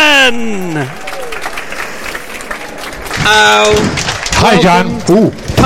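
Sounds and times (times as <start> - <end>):
large crowd applause at New Scientist Live: 0.1 - 5.1
speech: 4.8 - 5.5.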